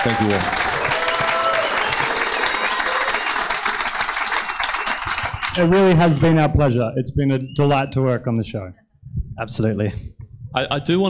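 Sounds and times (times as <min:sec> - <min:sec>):
speech: 0:00.0 - 0:00.6, 0:05.6 - 0:08.8, 0:09.4 - 0:11.0
audience applause: 0:00.0 - 0:06.5.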